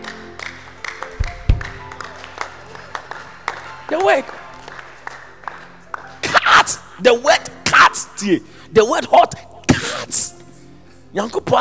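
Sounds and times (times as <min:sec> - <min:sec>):
church congregation clapping rhythmically during a Wednesday teaching service: 0:00.0 - 0:07.0
heavier low thumps: 0:01.2 - 0:01.8
speech: 0:03.9 - 0:04.4, 0:07.0 - 0:09.5, 0:11.1 - 0:11.5.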